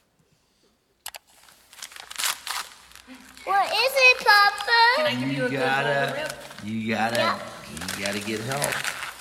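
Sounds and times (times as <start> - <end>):
child tearing open a wrapped Christmas present: 1.3 - 9.1
speech: 3.1 - 9.0.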